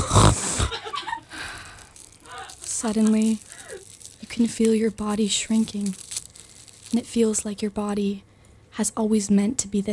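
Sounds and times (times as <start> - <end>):
sharp nasal snort of someone sniffing up fairy dust: 0.0 - 0.7
speech: 2.8 - 3.5, 4.4 - 6.0, 6.9 - 9.9.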